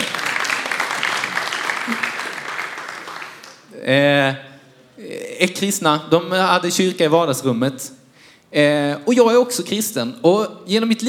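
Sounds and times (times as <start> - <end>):
audience applause: 0.0 - 3.7
speech: 3.8 - 4.4, 5.0 - 11.0.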